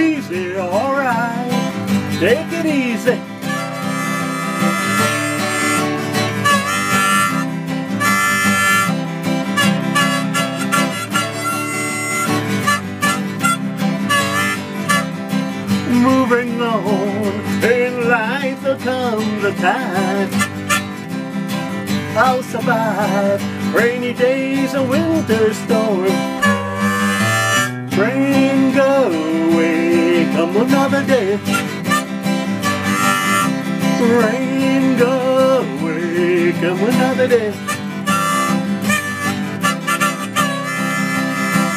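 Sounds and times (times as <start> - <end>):
guitar: 0.0 - 41.7
harmonica: 1.7 - 16.2, 19.5 - 21.5, 24.7 - 41.7.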